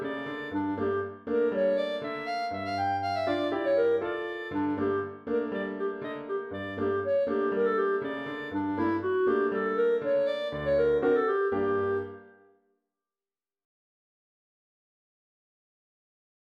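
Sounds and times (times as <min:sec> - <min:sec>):
clarinet playing a freylechs from Warsaw: 0:00.0 - 0:12.4.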